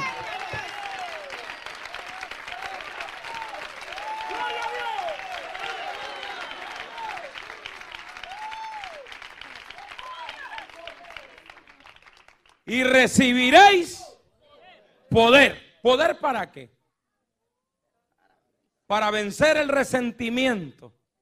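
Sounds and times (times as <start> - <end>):
church congregation applause and crowd noise: 0.0 - 14.0
speech: 12.7 - 14.0, 15.2 - 16.8, 18.9 - 21.0.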